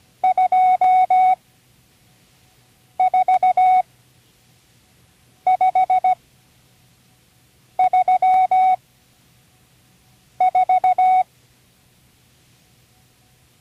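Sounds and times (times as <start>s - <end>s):
Morse code signals for numbers: 0.2s - 1.4s, 3.0s - 3.8s, 5.5s - 6.2s, 7.8s - 8.8s, 10.4s - 11.3s.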